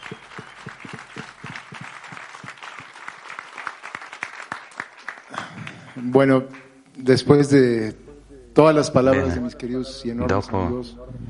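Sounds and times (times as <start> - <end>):
applause: 0.0 - 6.7
speech: 6.0 - 8.0, 8.6 - 11.2.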